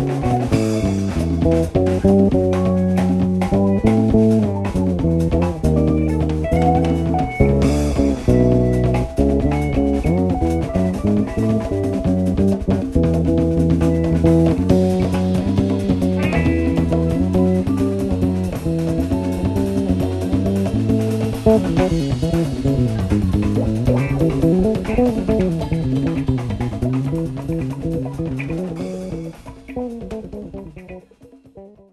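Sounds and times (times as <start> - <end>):
solo bass: 0.0 - 31.9.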